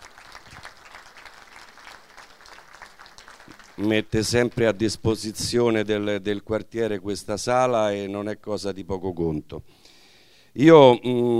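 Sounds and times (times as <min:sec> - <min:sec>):
soft applause at a neighbourhood assembly in a cinema: 0:00.0 - 0:05.0
speech: 0:03.8 - 0:09.9, 0:10.6 - 0:11.3.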